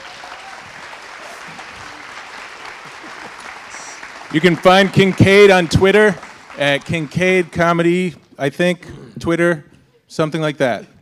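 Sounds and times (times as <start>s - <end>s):
crowd applauding: 0.0s - 8.2s
speech: 4.3s - 10.9s.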